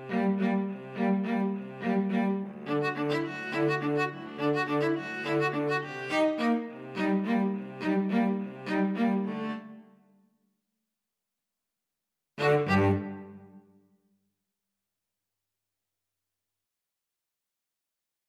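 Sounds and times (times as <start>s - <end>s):
string trio playing: 0.0s - 9.8s, 12.4s - 13.4s.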